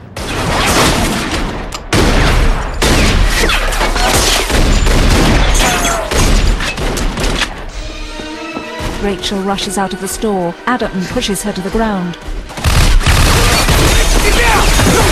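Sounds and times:
gunfire in a gun battle between townsfolk and a gang: 0:00.0 - 0:07.4, 0:12.5 - 0:15.1
speech: 0:09.0 - 0:12.4.

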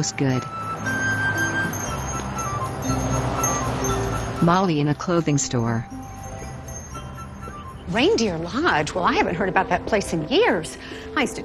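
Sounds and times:
speech: 0:00.0 - 0:01.0, 0:04.4 - 0:06.0, 0:07.9 - 0:11.4
street noise: 0:00.0 - 0:11.4
hand bell ringing on snowy street: 0:00.6 - 0:08.4.

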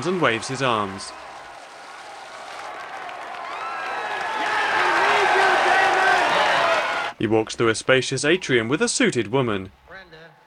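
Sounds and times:
speech: 0:00.0 - 0:01.2, 0:07.2 - 0:10.2
crowd applauding and cheering: 0:00.0 - 0:07.2, 0:09.8 - 0:10.4.

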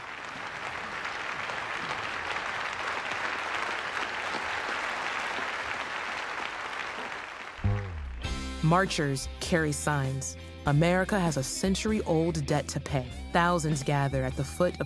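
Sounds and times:
audience applauding in standing ovation: 0:00.0 - 0:07.8
speech: 0:08.6 - 0:14.8.

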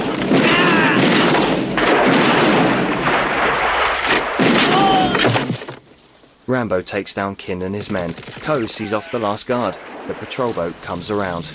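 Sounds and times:
shotgun blasts during a fight scene in an action film: 0:00.0 - 0:05.7
speech: 0:06.5 - 0:11.5.

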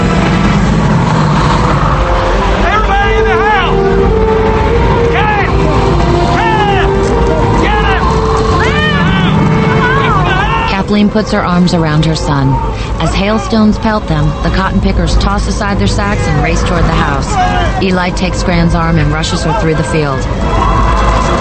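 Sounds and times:
tornado wind roaring over cotton fields: 0:00.0 - 0:21.4
speech: 0:11.0 - 0:20.7.

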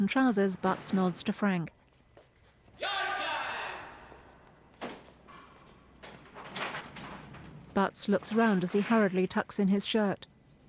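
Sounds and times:
heavy cell door sliding open: 0:00.0 - 0:01.7, 0:04.7 - 0:09.4
speech: 0:00.0 - 0:01.8, 0:07.8 - 0:10.3.

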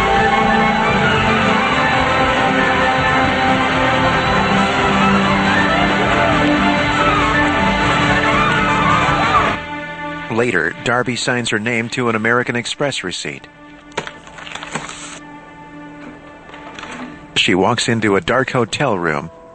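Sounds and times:
dense crowd cheering and shouting in a street under falling confetti: 0:00.0 - 0:09.6
speech: 0:10.4 - 0:13.7, 0:17.5 - 0:19.4.

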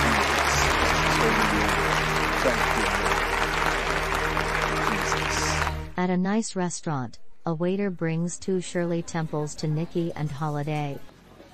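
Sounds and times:
audience standing and applauding: 0:00.0 - 0:06.0
speech: 0:06.0 - 0:11.1.

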